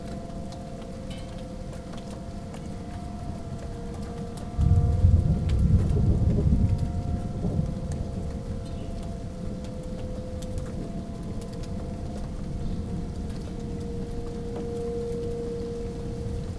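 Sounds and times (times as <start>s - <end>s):
tornado sirens in West Allis Wisconsin: 0.0s - 16.5s.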